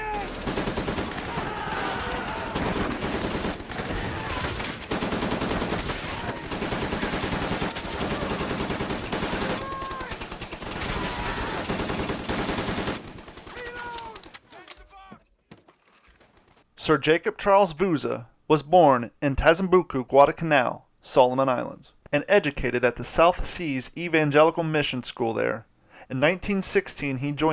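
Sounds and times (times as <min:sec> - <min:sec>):
heavy machine-gun fire during the Japanese banzai charge on Guadalcanal: 0:00.0 - 0:14.3
speech: 0:16.8 - 0:27.5.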